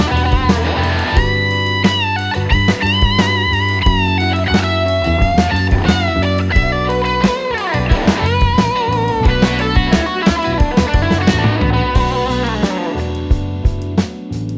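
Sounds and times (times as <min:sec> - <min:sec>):
blues guitar solo: 0:00.0 - 0:14.4.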